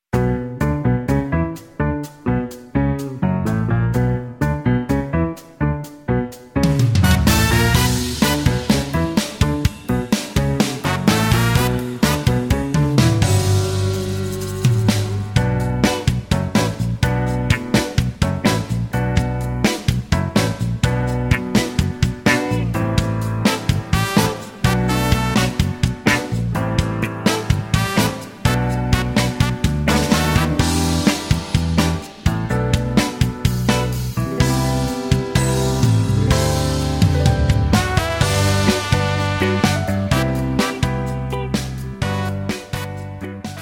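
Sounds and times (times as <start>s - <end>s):
music medley without backing vocals: 0.1s - 43.5s.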